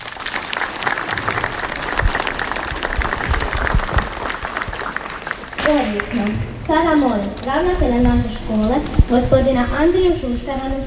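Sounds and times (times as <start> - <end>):
crowd clapping for first-graders at a school ceremony: 0.0 - 8.0
speech: 5.7 - 10.8.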